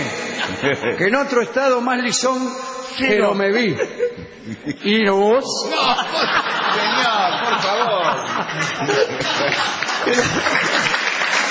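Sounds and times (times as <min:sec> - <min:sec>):
laughter: 0:00.0 - 0:01.1, 0:03.6 - 0:11.2
speech: 0:00.6 - 0:07.2, 0:08.4 - 0:10.9
audience applauding a candy seller: 0:06.7 - 0:11.5.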